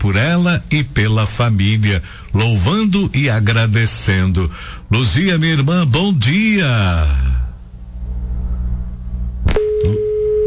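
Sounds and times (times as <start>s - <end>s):
speech: 0.0s - 7.4s
low rumbling background: 0.0s - 10.4s
telephone line tone of a failed call: 9.5s - 10.4s.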